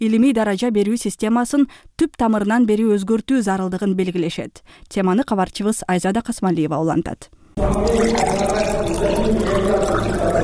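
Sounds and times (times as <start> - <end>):
speech: 0.0 - 10.4
water poured while serving a dissertation committee and preparing tea and coffee: 7.6 - 10.4.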